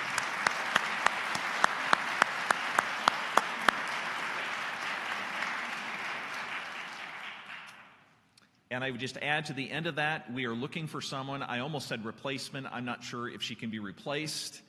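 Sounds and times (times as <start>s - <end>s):
audience applauding: 0.0s - 8.0s
speech: 8.8s - 14.6s.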